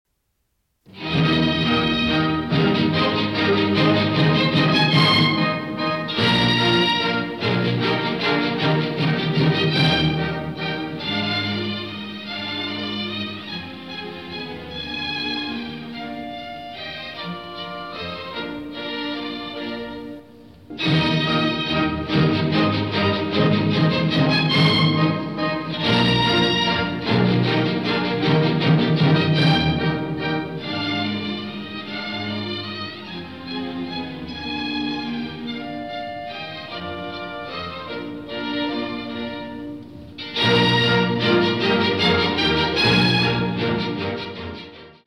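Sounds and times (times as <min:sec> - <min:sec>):
symphony in E-flat major: 0:00.8 - 0:45.0.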